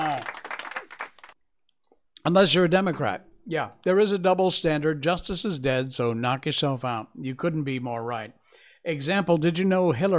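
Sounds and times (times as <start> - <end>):
applause: 0.0 - 1.4
speech: 2.3 - 10.1.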